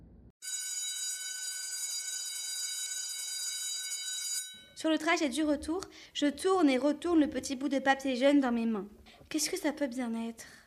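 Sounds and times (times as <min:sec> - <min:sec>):
school bell ringing: 0:00.4 - 0:05.1
speech: 0:04.8 - 0:10.6.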